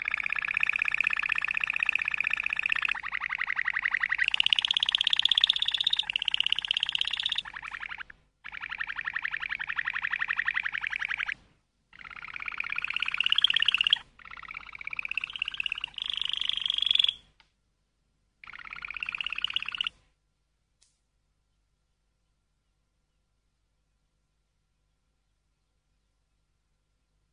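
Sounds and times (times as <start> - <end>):
canary trilling: 0.0 - 17.3, 18.4 - 20.0.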